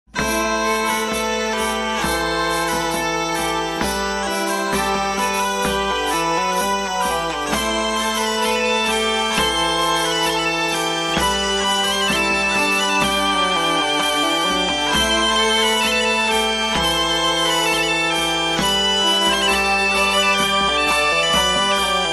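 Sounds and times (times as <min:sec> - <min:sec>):
traditional bourree dance tune: 0:00.1 - 0:22.1.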